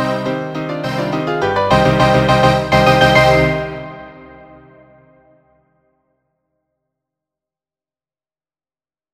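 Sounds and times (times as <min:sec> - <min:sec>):
musical accompaniment: 0:00.0 - 0:05.4.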